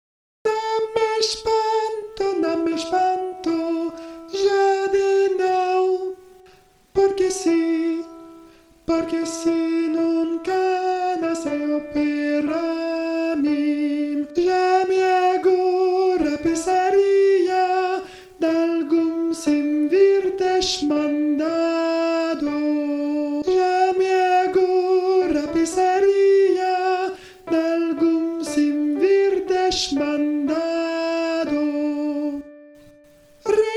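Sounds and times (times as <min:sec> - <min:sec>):
soprano singing: 0:00.4 - 0:33.7.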